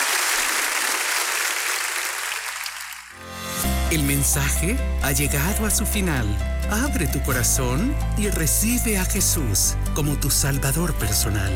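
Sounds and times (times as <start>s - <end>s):
audience applause: 0.0s - 3.2s
speech: 3.9s - 11.5s.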